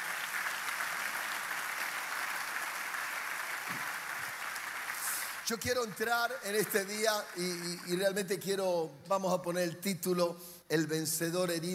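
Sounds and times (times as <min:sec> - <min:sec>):
audience applauding: 0:00.0 - 0:08.3
speech: 0:05.5 - 0:11.7.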